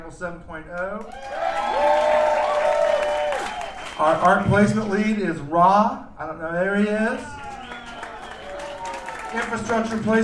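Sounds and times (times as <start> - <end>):
speech: 0.1 - 2.0, 4.0 - 7.4, 9.3 - 10.2
audience applause: 1.1 - 4.8, 7.3 - 10.2
cheers and whistles: 1.2 - 4.5, 7.2 - 9.7.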